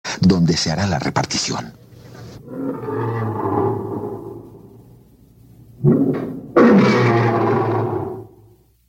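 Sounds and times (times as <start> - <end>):
speech: 0.2 - 1.8
lions roaring: 2.4 - 4.6, 5.8 - 8.4.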